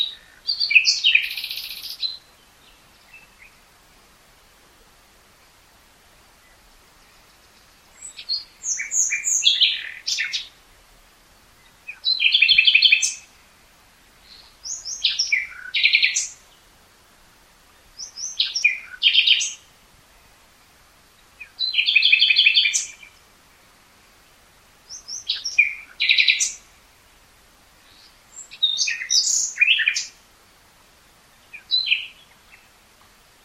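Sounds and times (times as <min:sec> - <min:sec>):
common nightingale singing: 0:00.0 - 0:03.7, 0:06.3 - 0:10.6, 0:11.5 - 0:13.4, 0:14.2 - 0:16.7, 0:17.6 - 0:20.4, 0:21.0 - 0:23.3, 0:24.2 - 0:26.9, 0:27.8 - 0:30.2, 0:31.2 - 0:32.8.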